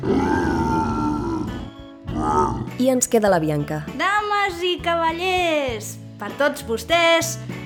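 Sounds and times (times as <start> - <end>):
monster lion roar sound effect: 0.0 - 2.8
speech: 2.8 - 7.6.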